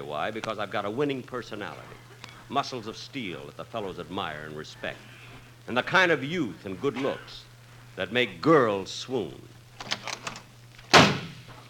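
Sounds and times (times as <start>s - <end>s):
speech: 0.0s - 9.9s
faint sounds: 0.0s - 11.6s
door slamming as someone leaves a studio: 9.8s - 11.5s.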